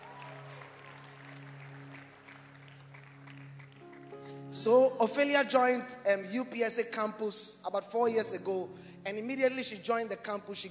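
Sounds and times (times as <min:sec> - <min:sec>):
audience clapping: 0:00.0 - 0:04.5
speech: 0:04.6 - 0:10.6.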